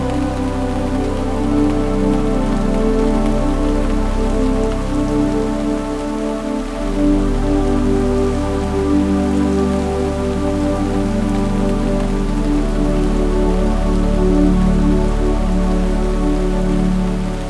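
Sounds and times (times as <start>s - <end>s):
quiet rain: 0.0s - 17.4s.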